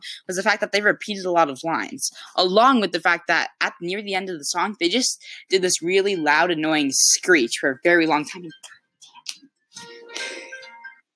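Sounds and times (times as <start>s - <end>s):
speech: 0.0s - 8.8s, 9.8s - 10.5s
phone notification tone: 9.8s - 11.0s.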